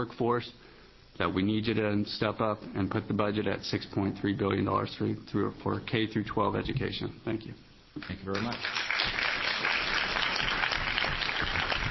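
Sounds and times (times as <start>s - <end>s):
speech: 0.0s - 9.2s
audience clapping: 8.0s - 11.8s.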